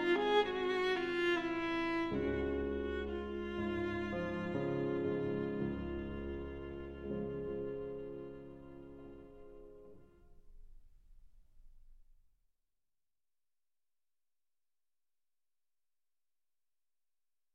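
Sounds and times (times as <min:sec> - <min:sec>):
violin: 0:00.0 - 0:10.8
piano: 0:00.0 - 0:12.2.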